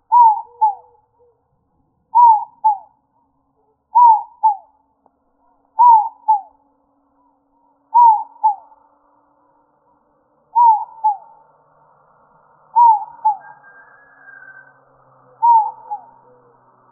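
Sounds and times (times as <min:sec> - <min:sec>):
dove giving falling double-note coos: 0:00.0 - 0:01.4, 0:02.1 - 0:02.9, 0:04.0 - 0:04.7, 0:05.8 - 0:06.6, 0:07.9 - 0:08.8, 0:10.6 - 0:11.4, 0:12.7 - 0:14.7, 0:15.3 - 0:16.9.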